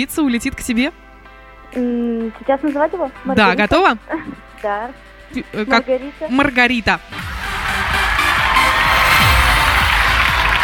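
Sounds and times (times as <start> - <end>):
speech: 0.0 - 1.0, 1.7 - 7.3
applause: 7.4 - 10.6.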